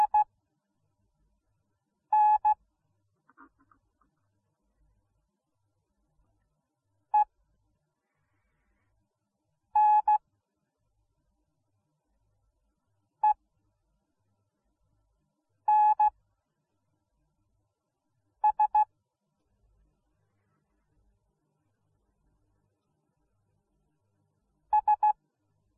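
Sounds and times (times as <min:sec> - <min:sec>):
morse code beeps: 0:00.0 - 0:00.3, 0:02.1 - 0:02.6, 0:09.8 - 0:10.2, 0:15.7 - 0:16.1, 0:18.4 - 0:18.9, 0:24.7 - 0:25.2.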